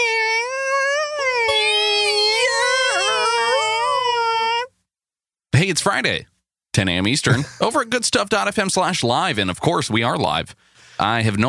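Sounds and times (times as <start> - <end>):
voice imitating a creaking door: 0.0 - 4.7
speech: 5.6 - 11.4.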